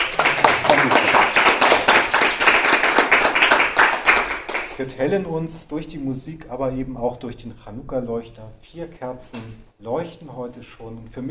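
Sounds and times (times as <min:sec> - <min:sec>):
audience applause: 0:00.0 - 0:04.8
speech: 0:00.8 - 0:01.2, 0:04.8 - 0:11.2.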